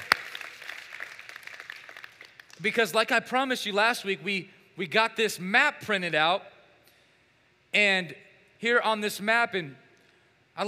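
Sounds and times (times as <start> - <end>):
audience clapping: 0.0 - 2.8
speech: 2.6 - 6.5, 7.7 - 9.8.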